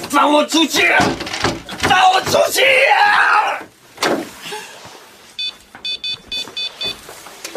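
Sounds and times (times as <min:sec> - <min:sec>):
speech: 0:00.2 - 0:03.6
dial-tone beeps from a phone keypad: 0:05.4 - 0:07.0.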